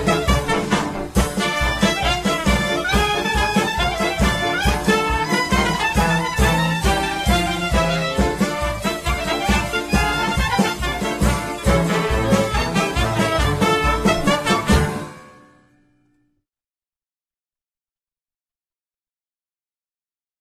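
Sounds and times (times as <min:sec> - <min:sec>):
klezmer band playing a freylach: 0:00.0 - 0:15.7.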